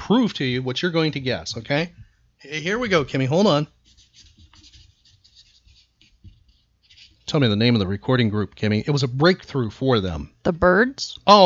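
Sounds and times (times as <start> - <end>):
speech: 0.1 - 4.3, 7.3 - 11.4
pen scratching on paper: 3.8 - 7.4.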